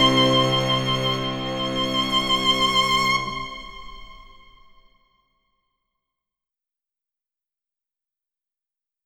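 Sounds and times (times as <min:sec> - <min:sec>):
violin minuet: 0:00.0 - 0:04.7.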